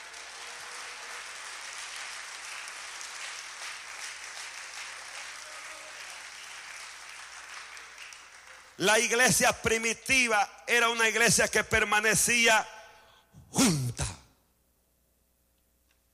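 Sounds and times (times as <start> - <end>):
audience applause: 0.0 - 8.8
speech: 8.8 - 12.7, 13.5 - 13.9.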